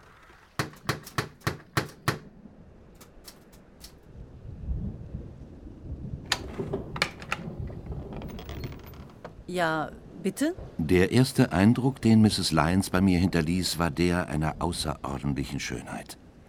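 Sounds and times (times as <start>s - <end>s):
typing on a typewriter: 0.6s - 2.2s
speech: 9.5s - 16.2s.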